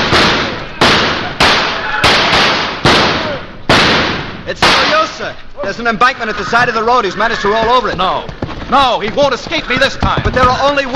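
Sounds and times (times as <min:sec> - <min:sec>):
gunshots fired at a fleeing man in a radio drama: 0:00.0 - 0:05.3
speech: 0:05.2 - 0:10.9.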